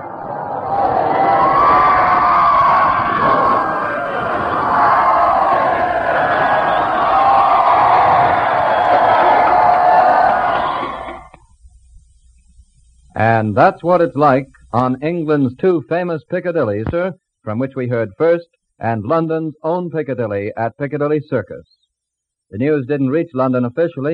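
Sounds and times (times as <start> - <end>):
large crowd cheering at Piccadilly Circus: 0.0 - 11.4
speech: 13.4 - 21.8, 22.5 - 24.1.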